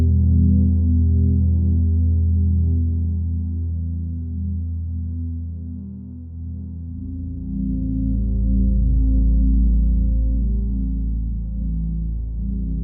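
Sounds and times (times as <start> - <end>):
ambient music: 0.0 - 12.8.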